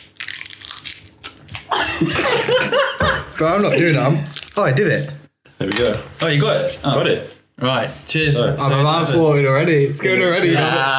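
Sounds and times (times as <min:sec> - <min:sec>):
person struggling to open a packet of sweets: 0:00.0 - 0:01.7, 0:04.2 - 0:04.7
laughter: 0:01.7 - 0:04.1, 0:10.1 - 0:10.9
speech: 0:02.0 - 0:10.9.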